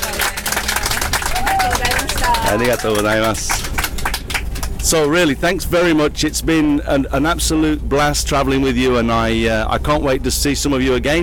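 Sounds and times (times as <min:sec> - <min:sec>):
round of applause: 0:00.0 - 0:05.1
speech: 0:02.5 - 0:03.7, 0:04.8 - 0:11.2.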